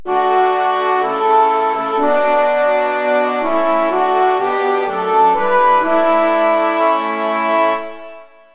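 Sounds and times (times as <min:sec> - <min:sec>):
national anthem: 0:00.0 - 0:08.1.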